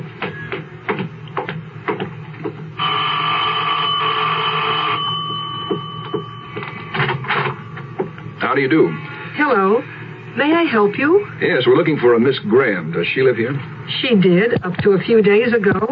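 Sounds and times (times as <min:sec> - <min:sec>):
electric doorbell ringing: 0:02.8 - 0:08.0
speech: 0:08.6 - 0:15.9.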